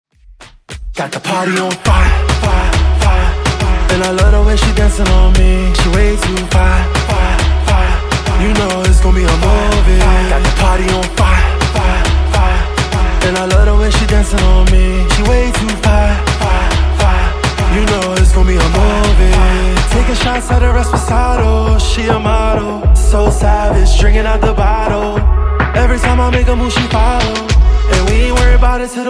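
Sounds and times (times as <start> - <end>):
dirty music intro and outro: 0.9 - 29.0.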